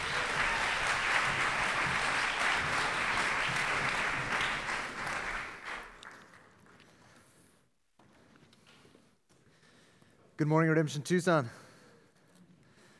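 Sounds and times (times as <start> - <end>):
audience applause: 0.0 - 6.6
speech: 10.4 - 11.6.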